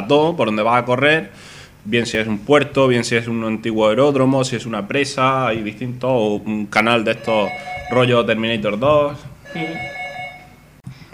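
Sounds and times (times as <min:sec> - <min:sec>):
speech: 0:00.1 - 0:10.0
electronic doorbell chime: 0:07.2 - 0:08.4, 0:09.5 - 0:10.6.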